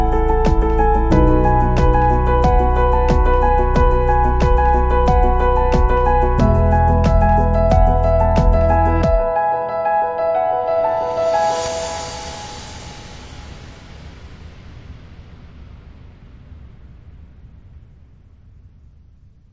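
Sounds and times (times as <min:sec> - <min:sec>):
inspirational piano: 0:00.0 - 0:14.4.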